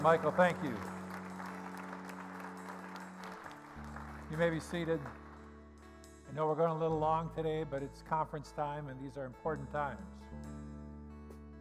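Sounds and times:
speech: 0.0 - 0.9, 4.3 - 5.2, 6.3 - 10.6
audience applause: 0.0 - 5.6.

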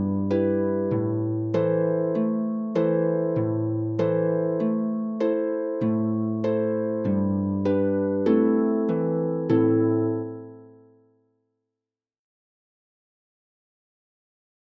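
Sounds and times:
harp tune: 0.0 - 11.0.

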